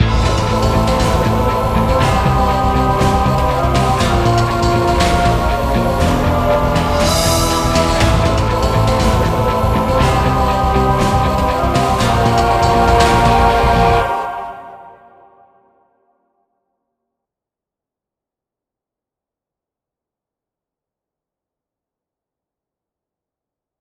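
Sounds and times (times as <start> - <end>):
game music general event: 0.0 - 15.0.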